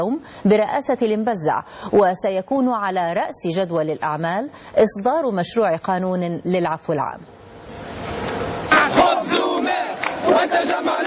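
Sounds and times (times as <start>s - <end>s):
speech: 0.0s - 11.0s
protesters chanting a slogan in Tunis: 8.7s - 11.0s.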